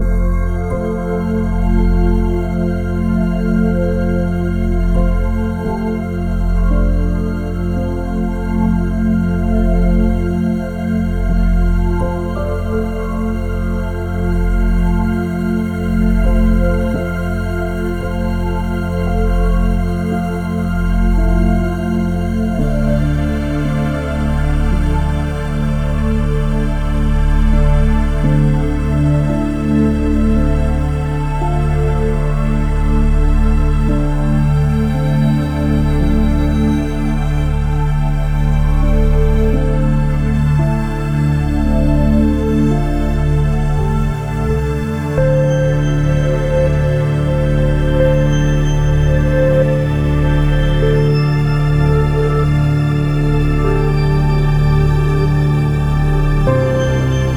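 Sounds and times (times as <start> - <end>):
ethereal wind chime: 0.0 - 57.3.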